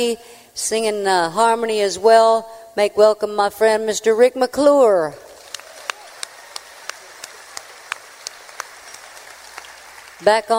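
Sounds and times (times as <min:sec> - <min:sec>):
speech: 0:00.0 - 0:05.2, 0:10.2 - 0:10.5
audience applause for the drummer: 0:05.3 - 0:10.5
crowd noise: 0:05.3 - 0:10.5.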